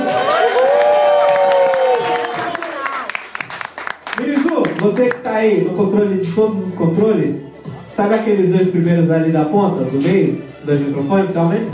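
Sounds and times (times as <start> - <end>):
audience cheering and whooping: 0.0 - 3.3
audience applause: 0.0 - 5.2
speech: 4.9 - 11.7.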